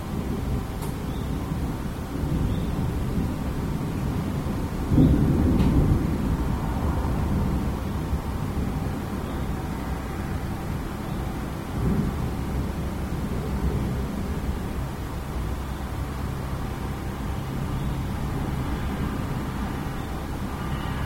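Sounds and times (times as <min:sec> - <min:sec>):
distant thunder heard from an office: 0:00.1 - 0:21.0.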